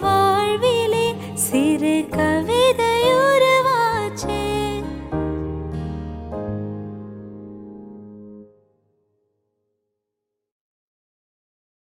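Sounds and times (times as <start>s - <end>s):
woman singing a song: 0.0s - 5.2s.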